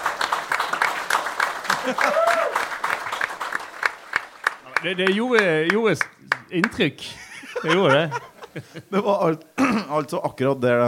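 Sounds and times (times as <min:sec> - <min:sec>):
crowd applause: 0:00.0 - 0:06.1
laughter: 0:01.7 - 0:02.4, 0:07.1 - 0:09.9
speech: 0:01.8 - 0:02.3, 0:04.8 - 0:10.8
scattered cheers and voices: 0:01.8 - 0:02.7.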